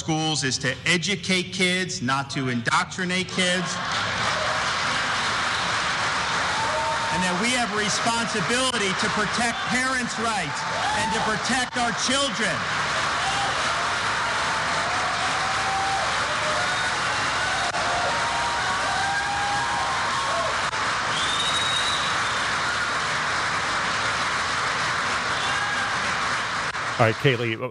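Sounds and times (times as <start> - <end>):
speech: 0.0 - 4.3, 7.2 - 12.9, 27.0 - 27.6
crowd cheering: 2.7 - 27.6
loud long applause: 3.0 - 27.6
high whistles: 21.1 - 22.8.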